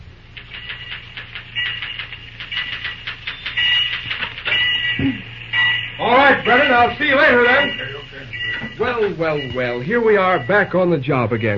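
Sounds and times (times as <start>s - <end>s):
typewriter typing in the superintendent's office: 0.3s - 5.0s
speech: 5.0s - 5.3s, 6.0s - 7.9s, 8.8s - 11.5s.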